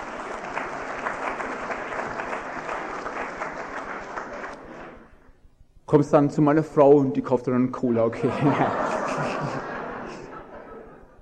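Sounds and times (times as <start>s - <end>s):
audience applause: 0.0s - 5.0s
speech: 5.9s - 9.6s
laughter: 8.0s - 11.2s.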